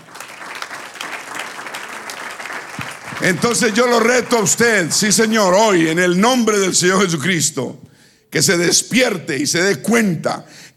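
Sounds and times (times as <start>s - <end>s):
audience applauding: 0.0s - 5.0s
speech: 3.2s - 10.7s.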